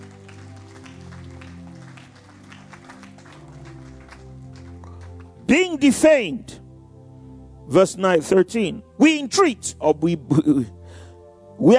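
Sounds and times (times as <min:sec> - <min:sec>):
audience clapping: 0:00.0 - 0:05.5
speech: 0:05.5 - 0:06.6, 0:07.7 - 0:10.8, 0:11.6 - 0:11.7.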